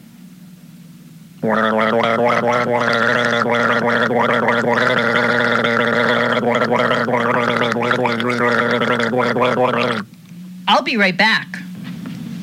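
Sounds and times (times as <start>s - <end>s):
speech: 1.4s - 5.1s, 7.9s - 11.6s
person gulping a drink: 1.4s - 10.1s.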